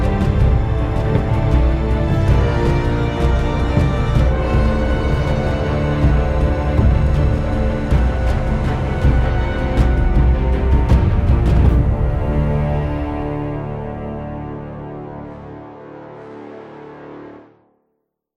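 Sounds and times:
fight music loop: 0.0 - 13.6.

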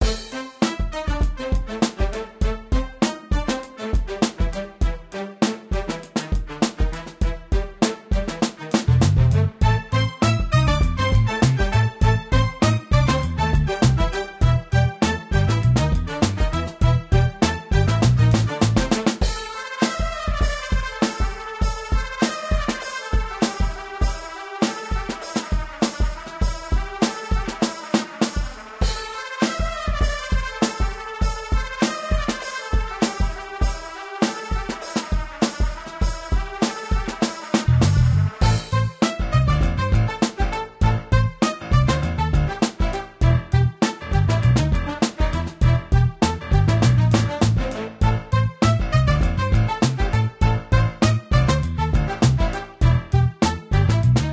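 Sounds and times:
funk music: 0.0 - 54.3.

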